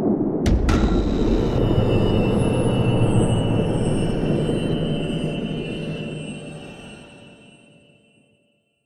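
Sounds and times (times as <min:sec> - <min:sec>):
decreasing action stinger: 0:00.2 - 0:07.2.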